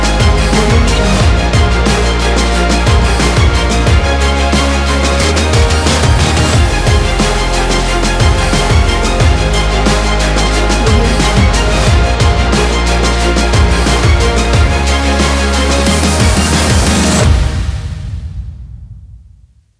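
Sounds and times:
sport motivational epic trailer music: 0:00.0 - 0:19.2.

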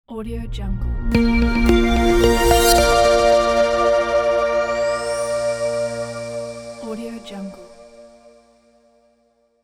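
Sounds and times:
elegant logo music: 0:00.9 - 0:08.4.

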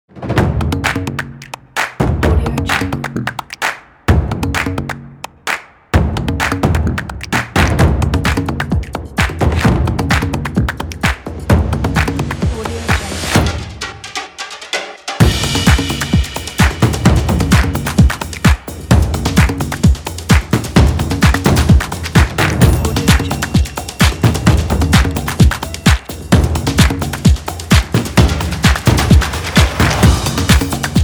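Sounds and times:
percussion: 0:00.1 - 0:31.0.

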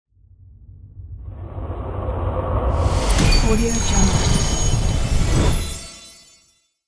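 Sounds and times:
magic spell effect: 0:02.7 - 0:06.6.

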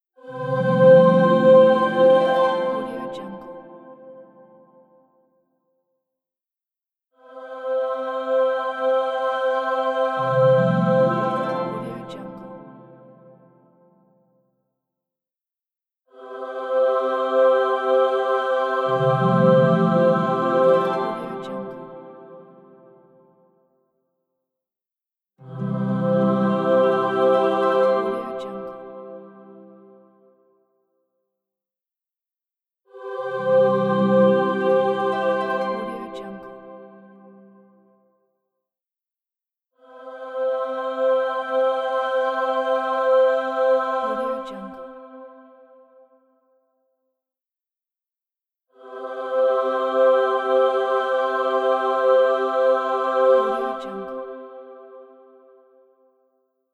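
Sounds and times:
heavenly angel choir singing: 0:00.2 - 0:04.6, 0:07.2 - 0:13.5, 0:16.1 - 0:23.2, 0:25.4 - 0:30.1, 0:32.9 - 0:37.3, 0:39.8 - 0:45.7, 0:48.8 - 0:55.8.

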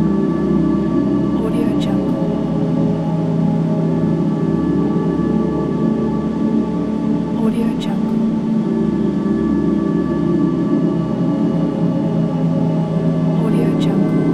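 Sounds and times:
dark ambient soundscape: 0:00.0 - 0:14.3.

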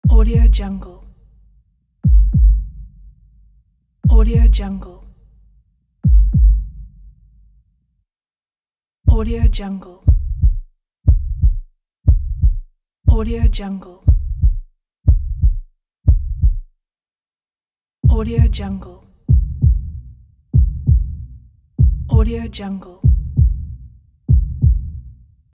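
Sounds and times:
heartbeat: 0:00.0 - 0:00.7, 0:02.0 - 0:03.0, 0:04.0 - 0:04.7, 0:06.0 - 0:06.9, 0:09.1 - 0:16.7, 0:18.0 - 0:25.1.

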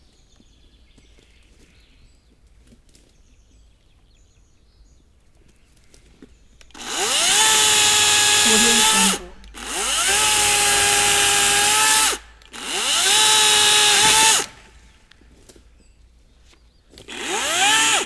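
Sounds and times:
electric saw cutting trees: 0:06.7 - 0:14.8, 0:17.0 - 0:18.0.

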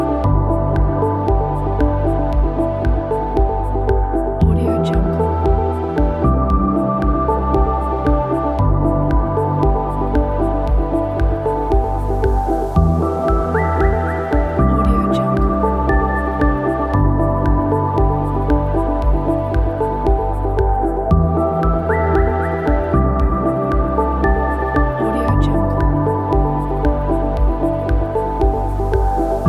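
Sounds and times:
chilled ambient background music: 0:00.0 - 0:29.4.

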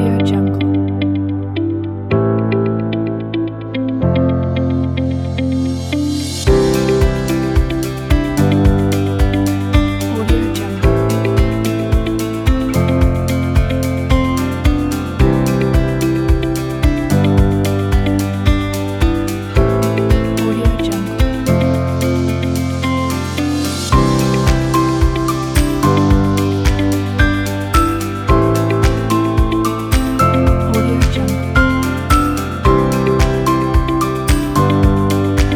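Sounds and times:
spring commercial corporate music: 0:00.0 - 0:35.5.

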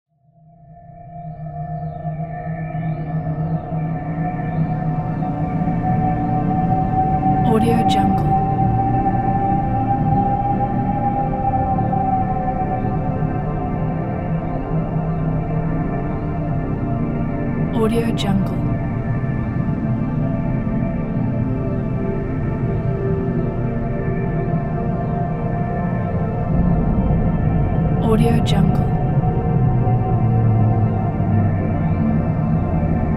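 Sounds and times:
deep space ambient music: 0:00.2 - 0:33.1.

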